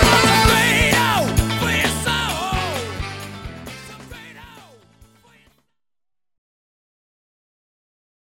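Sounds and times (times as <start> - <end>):
alto saxophone: 0.0 - 4.4.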